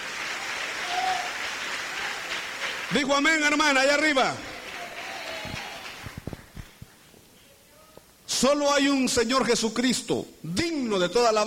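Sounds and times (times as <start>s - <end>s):
audience applause: 0.0s - 6.8s
speech: 2.9s - 4.4s, 8.4s - 11.4s.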